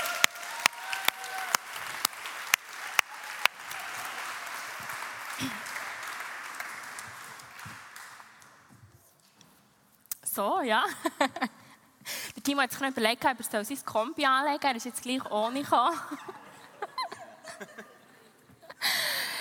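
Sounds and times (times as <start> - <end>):
audience applause: 0.0 - 8.6
speech: 5.4 - 5.6, 10.4 - 11.6, 12.5 - 16.3
laughter: 15.8 - 19.0.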